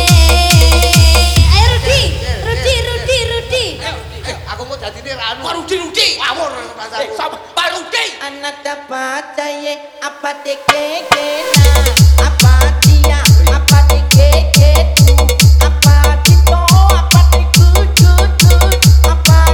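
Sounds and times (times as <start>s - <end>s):
EDM remix: 0.0s - 6.0s, 10.3s - 19.5s.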